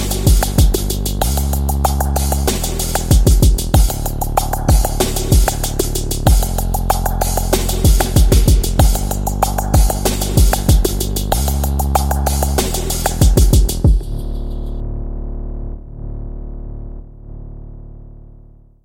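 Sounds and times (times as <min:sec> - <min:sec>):
drums: 0:00.0 - 0:14.6
bass: 0:00.0 - 0:18.8.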